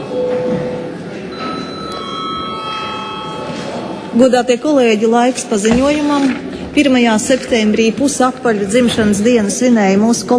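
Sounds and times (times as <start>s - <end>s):
murmur of noise: 0.0s - 10.3s
parliament session bell electronic tone: 0.1s - 4.7s
speech: 4.2s - 10.3s.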